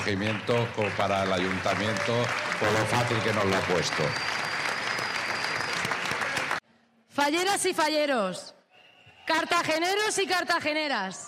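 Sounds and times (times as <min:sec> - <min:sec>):
audience applause: 0:00.0 - 0:06.6
speech: 0:00.1 - 0:04.4, 0:07.2 - 0:08.5, 0:09.3 - 0:11.2.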